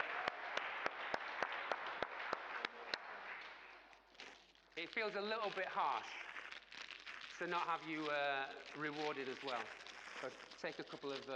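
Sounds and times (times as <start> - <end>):
round of applause: 0.0 - 4.1
speech: 4.8 - 6.3, 7.4 - 11.3.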